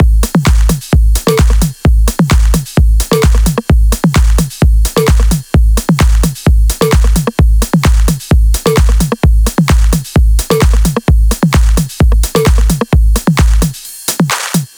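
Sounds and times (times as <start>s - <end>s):
130 BPM drum kit: 0.0s - 14.7s.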